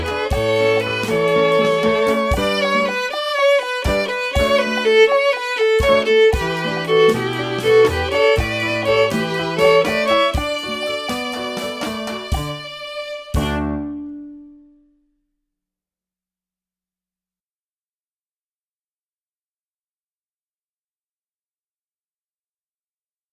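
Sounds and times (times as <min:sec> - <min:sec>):
violin playing a rumba: 0:00.0 - 0:14.9.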